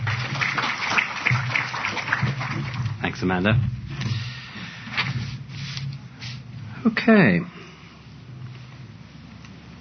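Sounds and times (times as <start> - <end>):
audience applause welcoming a speaker at a business presentation: 0.0 - 3.5
speech: 3.2 - 3.8, 6.8 - 7.6.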